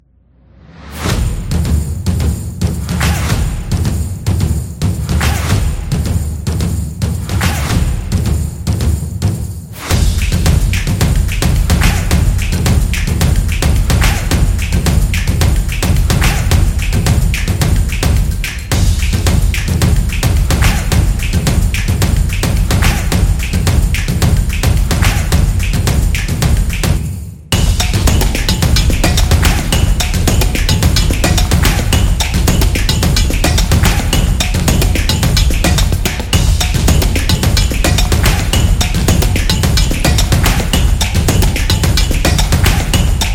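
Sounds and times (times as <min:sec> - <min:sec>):
karting sport drums: 0:00.8 - 0:43.3.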